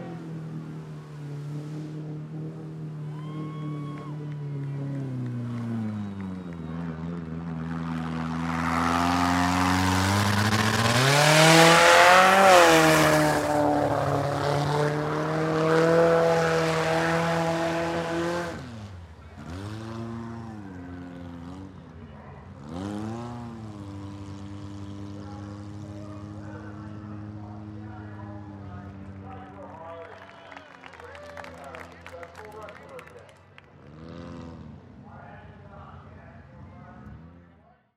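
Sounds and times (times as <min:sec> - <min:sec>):
swamp jeep racing around a track: 0:00.0 - 0:37.8
fans cheering: 0:02.8 - 0:08.3, 0:28.7 - 0:33.6.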